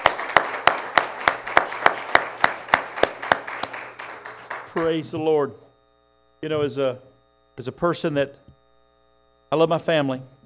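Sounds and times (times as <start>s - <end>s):
audience clapping in steady unison: 0.0s - 5.3s
speech: 4.8s - 5.7s, 6.4s - 8.5s, 9.5s - 10.4s.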